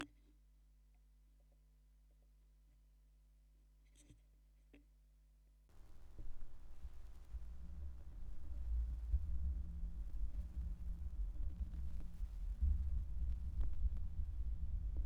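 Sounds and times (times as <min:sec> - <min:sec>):
vinyl record noise: 0:05.8 - 0:15.0.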